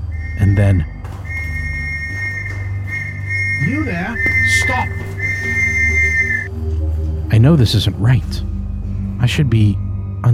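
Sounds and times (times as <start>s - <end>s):
shrill whistle: 0.0s - 6.5s
speech: 0.4s - 1.0s, 3.6s - 5.6s, 7.3s - 8.5s, 9.2s - 10.3s.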